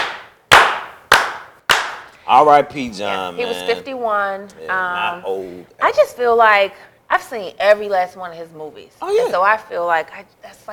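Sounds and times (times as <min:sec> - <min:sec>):
slow clap: 0:00.0 - 0:02.2
speech: 0:02.3 - 0:10.7.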